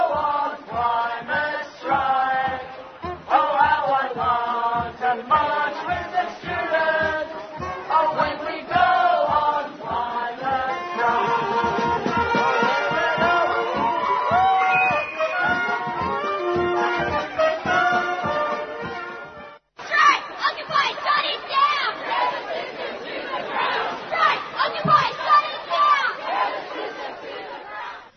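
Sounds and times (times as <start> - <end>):
climate protest crowd chanting in unison: 0.0 - 18.8, 19.8 - 28.1
crowd cheering and shouting: 11.1 - 18.2, 19.8 - 28.1.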